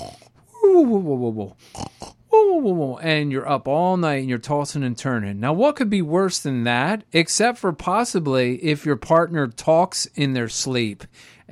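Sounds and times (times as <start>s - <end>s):
voice imitating a loud snore: 0.0s - 0.3s, 1.6s - 2.2s
speech: 0.8s - 1.8s, 2.6s - 11.4s.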